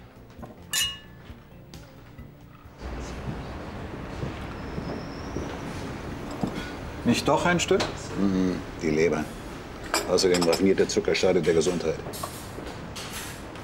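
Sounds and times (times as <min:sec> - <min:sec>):
room noise: 0:00.0 - 0:13.6
glasses clinking in a toast: 0:00.5 - 0:01.4, 0:09.8 - 0:11.0
speech: 0:07.1 - 0:09.4, 0:10.1 - 0:12.4.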